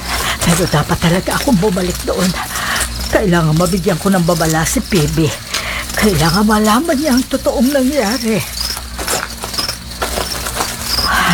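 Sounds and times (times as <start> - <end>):
footsteps: 0.0 - 11.3
rustling: 0.0 - 11.3
speech: 0.5 - 8.6.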